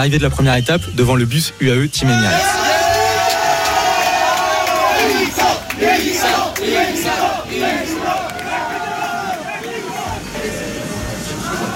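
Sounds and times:
speech: 0.0s - 2.8s
crowd of cycling fans chanting in Barcelona: 2.1s - 11.7s.

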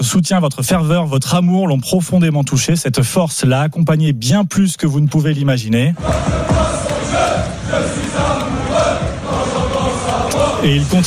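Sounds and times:
speech: 0.1s - 8.4s, 10.6s - 11.0s
football supporters singing a chant: 6.0s - 11.0s.

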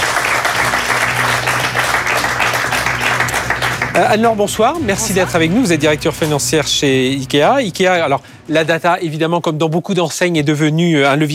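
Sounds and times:
audience applause: 0.0s - 6.9s
speech: 4.0s - 11.3s.

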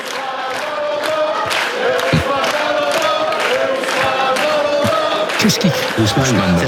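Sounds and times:
football supporters chanting before a match: 0.0s - 6.6s
person talking: 5.4s - 6.6s.

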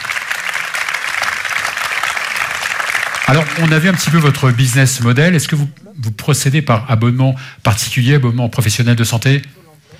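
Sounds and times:
audience applause: 0.0s - 5.5s
speech: 3.3s - 9.6s.

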